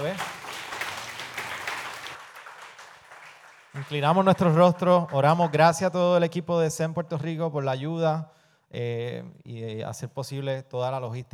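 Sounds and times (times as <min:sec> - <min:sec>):
speech: 0:00.0 - 0:00.4, 0:03.8 - 0:11.3
audience applause: 0:00.0 - 0:04.4.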